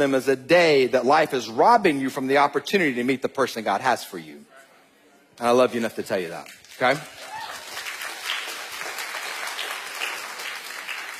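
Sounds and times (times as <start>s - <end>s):
speech: 0.0s - 4.5s, 5.4s - 7.2s
audience applause: 6.8s - 11.1s.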